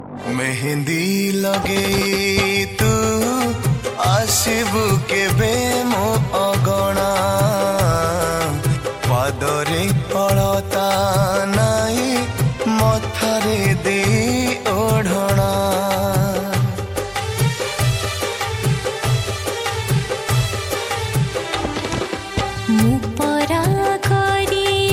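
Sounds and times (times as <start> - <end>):
Odia song: 0.0 - 24.8.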